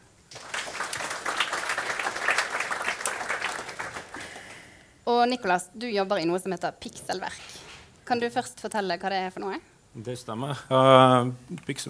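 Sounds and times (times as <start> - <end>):
audience applause: 0.3 - 4.6
speech: 5.2 - 11.8.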